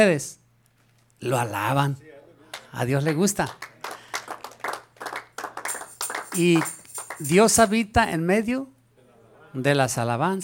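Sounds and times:
speech: 0:00.0 - 0:00.4, 0:01.2 - 0:02.1, 0:02.7 - 0:03.7, 0:06.3 - 0:08.8, 0:09.5 - 0:10.4
audience clapping: 0:02.5 - 0:07.7.

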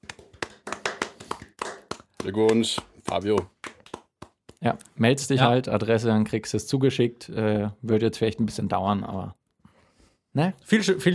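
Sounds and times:
short burst of hand clapping: 0:00.0 - 0:04.9
speech: 0:02.2 - 0:03.6, 0:04.6 - 0:09.4, 0:10.4 - 0:11.1.

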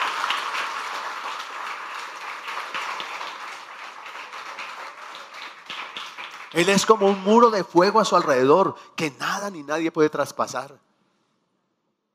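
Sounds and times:
audience applauding: 0:00.0 - 0:08.1
speech: 0:06.5 - 0:10.9.

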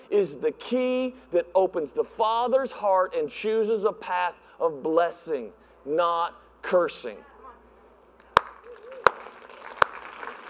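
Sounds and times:
speech: 0:00.1 - 0:07.3
scattered audience hand claps: 0:08.2 - 0:10.4.

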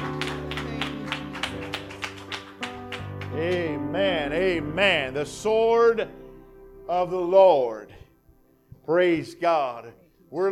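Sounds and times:
audience clapping in unison: 0:00.0 - 0:03.8
speech: 0:03.4 - 0:06.2, 0:06.9 - 0:08.0, 0:08.9 - 0:10.5.

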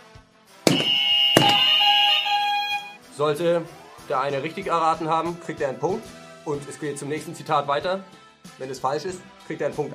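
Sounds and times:
game show buzzer being tested: 0:00.7 - 0:03.0
speech: 0:03.2 - 0:09.9.

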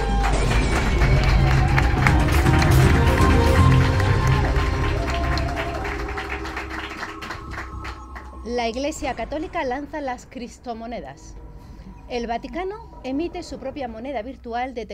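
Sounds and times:
audience applause: 0:00.0 - 0:08.5
scattered crowd cheers: 0:00.0 - 0:08.5
speech: 0:08.6 - 0:11.4, 0:12.1 - 0:14.9.

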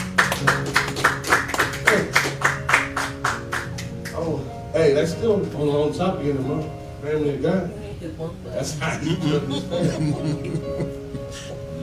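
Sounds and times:
audience hand clapping: 0:00.0 - 0:04.3
speech: 0:04.9 - 0:11.5
laughter: 0:08.8 - 0:11.8.

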